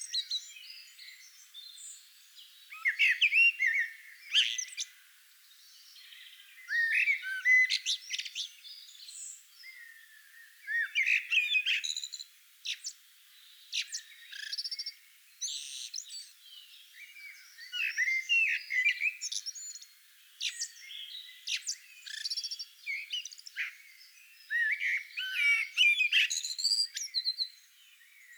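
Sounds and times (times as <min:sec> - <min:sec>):
Eurasian blackbird singing warbled phrases: 0:00.0 - 0:05.0, 0:05.6 - 0:28.3.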